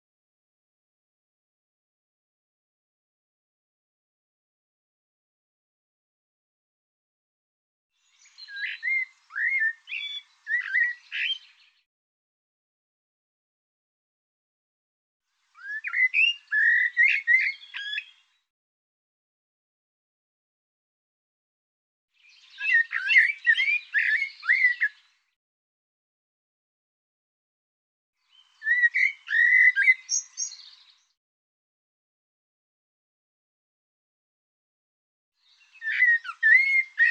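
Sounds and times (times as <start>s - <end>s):
bird singing: 8.0s - 11.8s, 15.6s - 18.5s, 22.2s - 25.3s, 28.2s - 31.2s, 35.4s - 37.0s.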